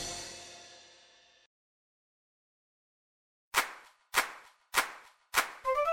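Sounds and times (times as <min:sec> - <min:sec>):
clap: 0:03.6 - 0:05.8.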